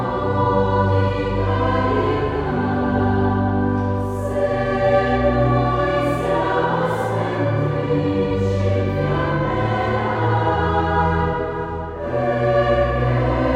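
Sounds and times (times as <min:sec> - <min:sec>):
choir of three voices singing: 0:00.0 - 0:13.5
organ: 0:00.0 - 0:13.5.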